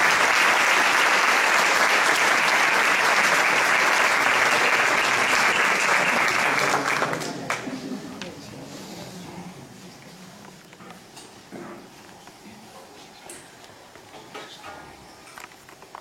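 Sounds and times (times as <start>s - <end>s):
audience applause: 0.0s - 7.9s.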